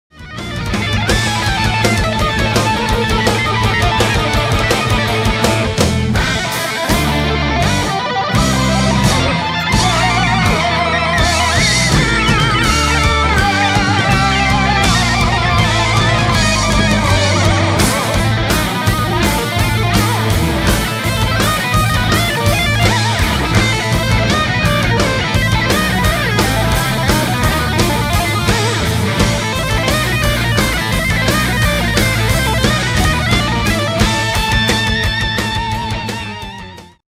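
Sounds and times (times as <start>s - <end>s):
live guitars: 0.1s - 37.0s.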